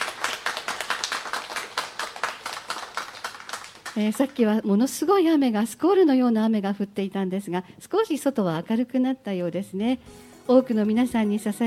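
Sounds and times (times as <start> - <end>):
audience applause: 0.0 - 4.0
speech: 4.0 - 11.6.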